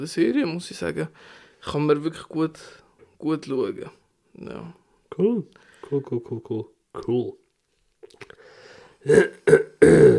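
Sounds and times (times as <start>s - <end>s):
speech: 0.0s - 7.4s, 9.0s - 10.1s
speaker coughing: 9.0s - 10.1s.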